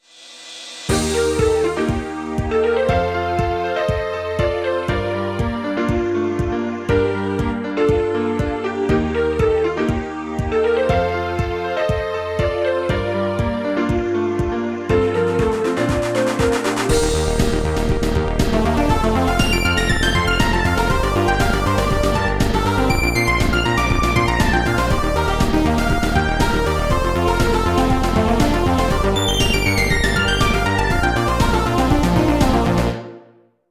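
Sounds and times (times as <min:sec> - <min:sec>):
piano playing: 0:00.9 - 0:33.4.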